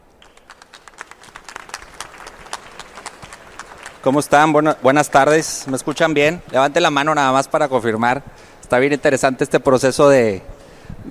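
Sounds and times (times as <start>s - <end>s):
audience applauding: 0.0s - 7.5s
speech: 4.0s - 11.0s.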